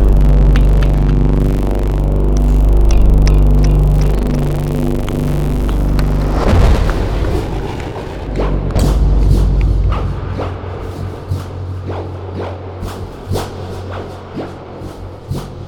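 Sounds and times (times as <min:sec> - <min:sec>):
quieter low rumble: 0:00.0 - 0:13.5
dark cinematic synth drone: 0:00.0 - 0:15.6
loud impact: 0:05.6 - 0:12.7.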